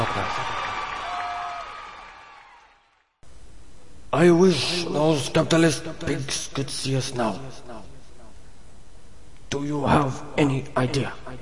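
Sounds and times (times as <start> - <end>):
crowd cheering and applauding: 0.0 - 3.1
speech: 4.1 - 7.9, 9.5 - 11.4.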